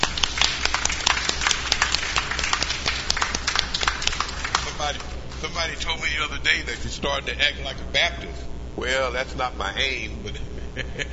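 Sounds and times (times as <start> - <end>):
audience hand clapping: 0.0 - 5.6
speech: 4.9 - 11.1
laughter: 10.2 - 11.1.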